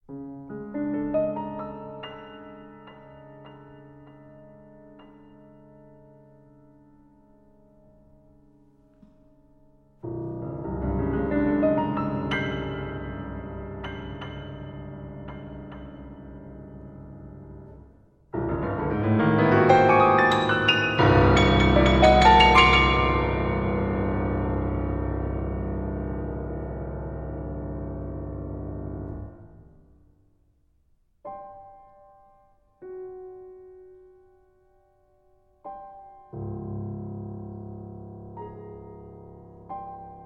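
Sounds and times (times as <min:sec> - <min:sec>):
piano etude: 0:00.0 - 0:30.2, 0:30.8 - 0:40.2.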